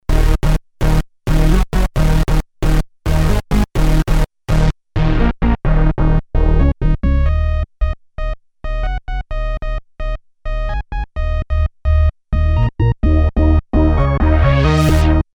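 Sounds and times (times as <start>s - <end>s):
bass: 0.0s - 15.3s.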